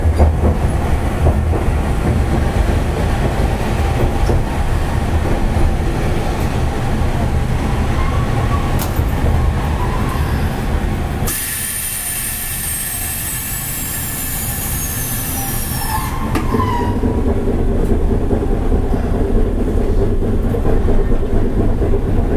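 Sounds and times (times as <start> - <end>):
Hankai Tramway type 701 tram rumble and rattling: 0.0 - 22.3
bright loud hiss: 11.3 - 15.4.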